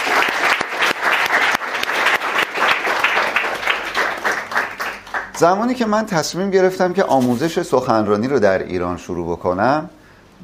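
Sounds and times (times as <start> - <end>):
audience applause: 0.0 - 5.6
speech: 5.4 - 10.4.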